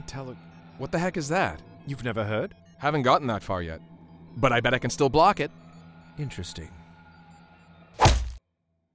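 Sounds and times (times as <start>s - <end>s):
speech: 0.1s - 5.6s, 6.2s - 6.8s
punch hitting a face: 8.0s - 8.4s.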